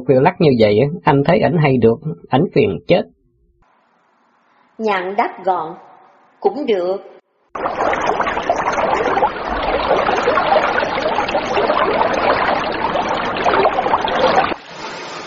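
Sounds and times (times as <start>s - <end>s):
speech: 0.0s - 3.2s, 4.8s - 9.2s
paddle strokes of a small wooden boat moving through water: 7.6s - 14.6s.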